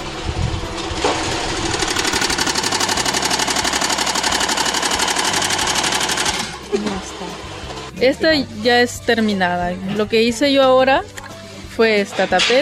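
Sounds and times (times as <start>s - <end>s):
sewing machine stitching a garment placket: 1.2s - 6.7s
speech: 8.0s - 11.1s, 11.8s - 12.6s.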